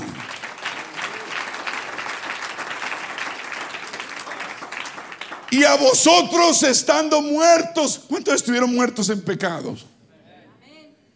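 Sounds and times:
audience applauding: 0.0 - 6.6
speech: 5.5 - 9.9.

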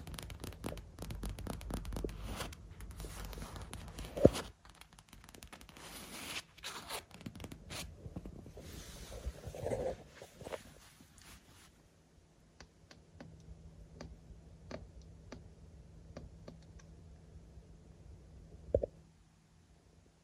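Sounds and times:
tapping and scratching on a lens: 0.0 - 11.1
low steady hum: 0.0 - 20.2.

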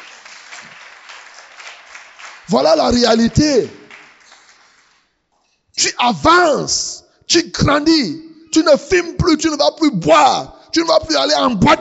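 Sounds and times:
church congregation clapping: 0.0 - 5.4
speech: 2.5 - 3.8, 6.0 - 11.8.

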